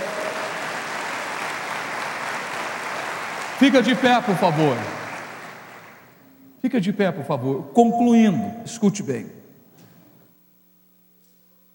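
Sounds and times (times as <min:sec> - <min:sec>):
audience applauding: 0:00.0 - 0:06.2
speech: 0:03.6 - 0:05.0, 0:06.6 - 0:09.4.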